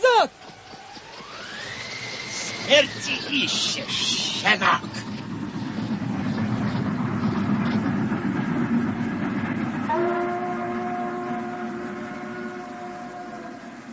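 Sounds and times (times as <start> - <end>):
rumble of wheels of slow suburban train: 0.0 - 13.9
speech: 2.7 - 5.0
sustained suburban train horn blaring: 9.8 - 13.9.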